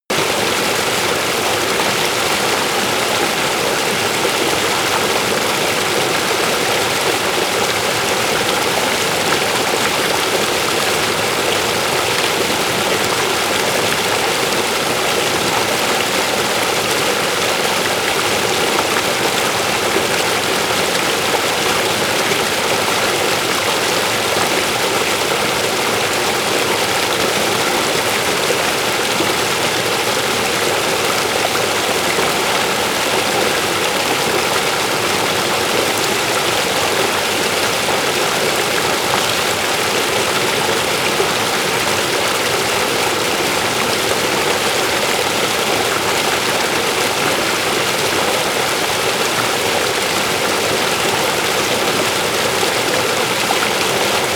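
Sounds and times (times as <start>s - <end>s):
river with hard stream: 0.1s - 54.3s.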